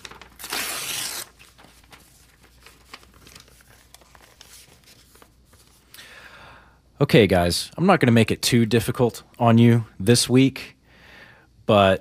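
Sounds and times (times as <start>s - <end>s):
envelope torn open: 0.0s - 5.3s
paper crinkling and rustling: 0.0s - 6.0s
speech: 7.0s - 10.8s, 11.7s - 11.9s.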